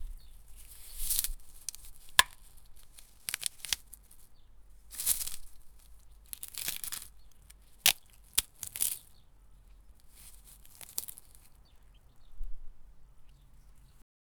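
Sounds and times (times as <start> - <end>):
plucking vegetables from a farm: 0.0 - 14.0.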